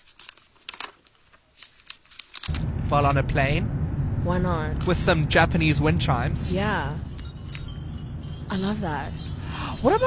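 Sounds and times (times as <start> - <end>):
page being turned and flipped: 0.0 - 2.7
speech: 2.9 - 7.1, 8.5 - 10.0.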